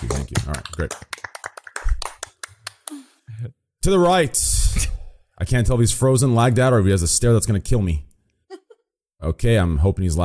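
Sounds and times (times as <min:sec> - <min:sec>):
golf claps: 0:00.0 - 0:03.0
speech: 0:00.3 - 0:01.3, 0:03.8 - 0:08.1, 0:09.2 - 0:10.2.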